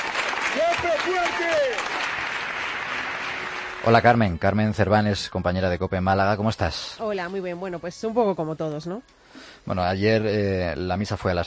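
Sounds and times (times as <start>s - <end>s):
emotional applause at a funeral: 0.0s - 4.4s
speech: 0.6s - 2.3s, 3.8s - 11.4s.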